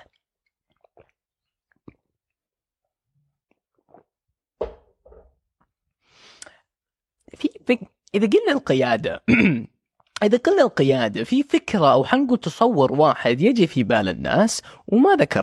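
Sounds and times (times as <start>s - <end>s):
person sipping and swallowing water: 0.0s - 2.4s, 3.2s - 4.3s
speech: 7.7s - 15.4s.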